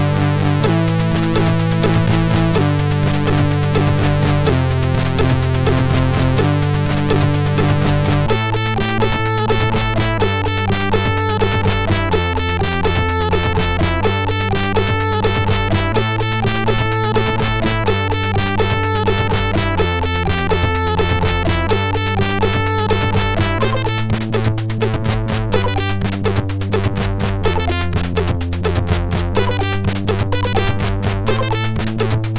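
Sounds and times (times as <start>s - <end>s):
MOS 6581R2 SID chip music: 0.2s - 32.3s.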